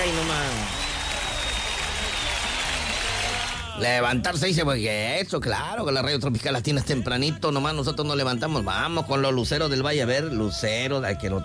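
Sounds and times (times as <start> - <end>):
applause sound effect: 0.0 - 3.9
speech: 0.1 - 0.8, 3.8 - 11.4.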